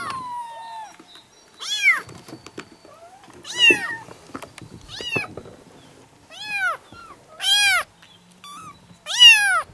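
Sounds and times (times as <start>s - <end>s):
kittens meowing: 0.0s - 1.0s, 3.0s - 4.0s, 6.3s - 9.7s.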